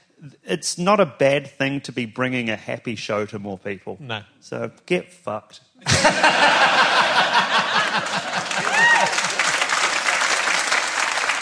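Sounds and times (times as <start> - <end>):
speech: 0.2 - 6.6
people chuckling: 5.8 - 9.5
scattered audience applause: 7.7 - 11.3.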